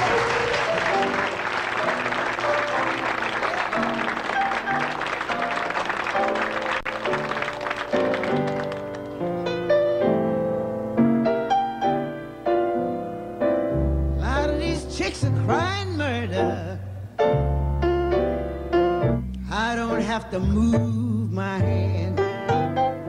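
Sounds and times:
audience applause welcoming an elderly singer: 0:00.0 - 0:09.3
music: 0:00.0 - 0:23.0.

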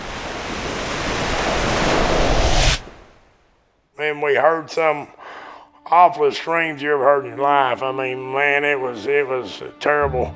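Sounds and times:
big ocean wave crashing against a pier: 0:00.0 - 0:03.4
speech: 0:04.1 - 0:05.2, 0:05.9 - 0:10.3.

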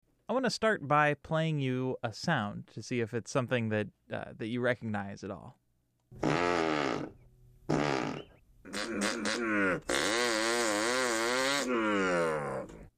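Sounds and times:
speech: 0:00.3 - 0:06.4
voice imitating a small two-horsepower chainsaw: 0:07.7 - 0:12.8.

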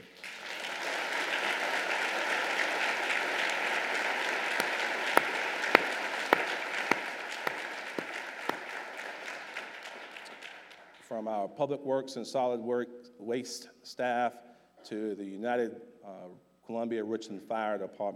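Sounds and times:
round of applause for first responders: 0:00.0 - 0:11.1
speech: 0:11.2 - 0:18.1.

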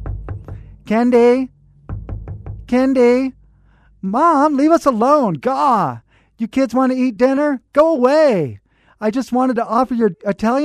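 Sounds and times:
knocking on a closed locked bedroom door: 0:00.0 - 0:01.1, 0:01.8 - 0:03.0
speech: 0:00.9 - 0:01.6, 0:02.7 - 0:03.4, 0:04.0 - 0:10.6.

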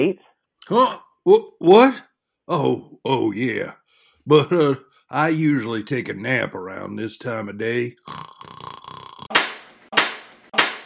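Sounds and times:
speech: 0:00.0 - 0:08.5
slapping: 0:09.3 - 0:10.8.

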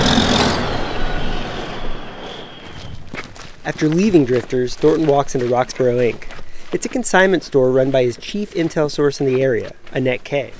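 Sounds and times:
heavy loaded logging truck rumbling through town: 0:00.0 - 0:03.2
speech: 0:03.7 - 0:10.5.

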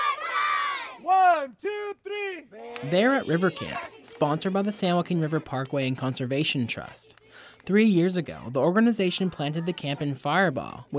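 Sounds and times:
children shouting and playing while jumping into the San Joaquin River: 0:00.0 - 0:01.4, 0:02.6 - 0:07.6, 0:08.8 - 0:10.8
speech: 0:01.4 - 0:10.9.

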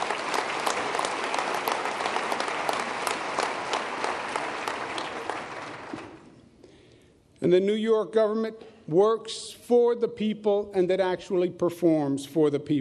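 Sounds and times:
audience applause: 0:00.0 - 0:06.4
speech: 0:07.5 - 0:12.7.

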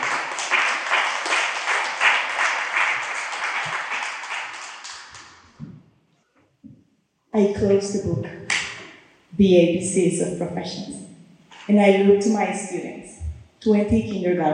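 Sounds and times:
audience applauding to welcome a speaker: 0:00.0 - 0:05.4
speech: 0:07.4 - 0:08.4, 0:09.4 - 0:11.0, 0:11.7 - 0:14.5.

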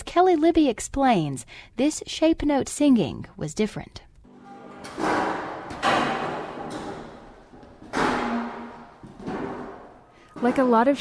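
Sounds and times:
speech: 0:00.2 - 0:04.1, 0:10.4 - 0:10.9
folding chairs being set up: 0:04.4 - 0:10.9.

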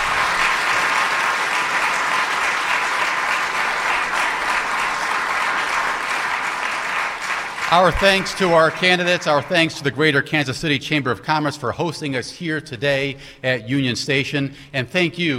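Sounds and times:
audience applause: 0:00.0 - 0:09.9
speech: 0:07.7 - 0:15.3.

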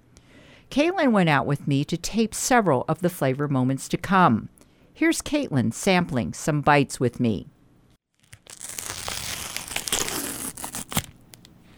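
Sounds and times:
speech: 0:00.7 - 0:07.5
food package wrapper crinkling and ripping: 0:08.1 - 0:11.6.

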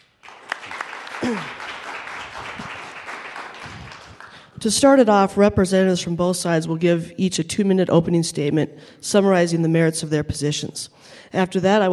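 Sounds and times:
audience applause at a public debate: 0:00.0 - 0:04.4
speech: 0:01.2 - 0:01.6, 0:04.6 - 0:11.9.

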